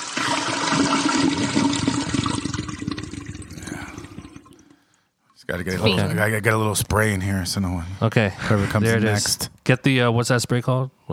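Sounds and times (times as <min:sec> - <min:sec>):
toilet flushing: 0:00.0 - 0:04.8
speech: 0:05.5 - 0:11.1.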